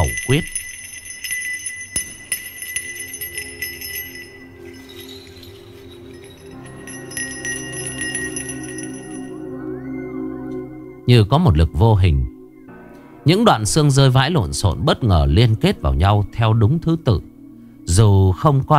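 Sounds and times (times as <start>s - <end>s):
small handheld bell rung during a ritual: 0.0s - 9.5s
low musical drone: 0.2s - 13.6s
speech: 0.3s - 0.6s, 11.1s - 12.3s, 13.2s - 17.3s, 17.9s - 18.7s.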